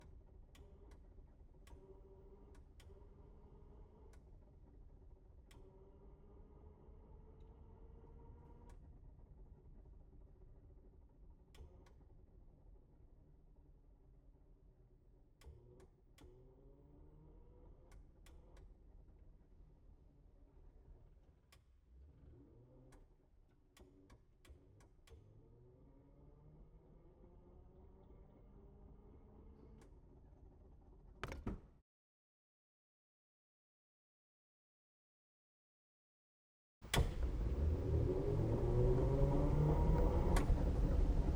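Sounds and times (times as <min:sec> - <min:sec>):
bumper car driving recorded onboard at the rear: 0:36.9 - 0:41.3.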